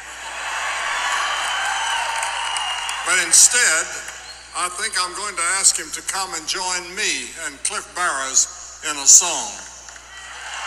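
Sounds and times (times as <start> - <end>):
audience applause: 0.0 - 4.2, 10.1 - 10.6
speech: 3.1 - 9.8.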